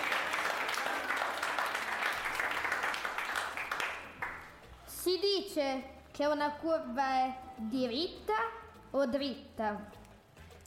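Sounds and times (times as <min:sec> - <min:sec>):
audience applause at a school event: 0:00.0 - 0:04.6
speech: 0:05.3 - 0:10.0.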